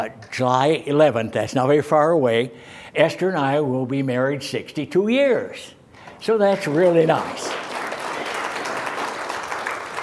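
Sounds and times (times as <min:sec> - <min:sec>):
speech: 0:00.0 - 0:07.7
audience applause: 0:06.6 - 0:10.0.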